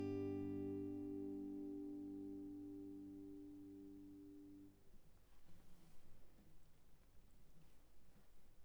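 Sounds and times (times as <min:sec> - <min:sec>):
acoustic guitar arpeggio: 0:00.0 - 0:04.7.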